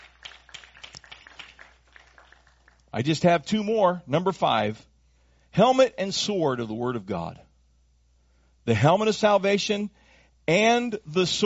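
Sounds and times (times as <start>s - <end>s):
church congregation clapping in thanks to the Lord during a sermon: 0.0s - 3.0s
speech: 2.9s - 4.9s, 5.6s - 7.5s, 8.7s - 11.4s.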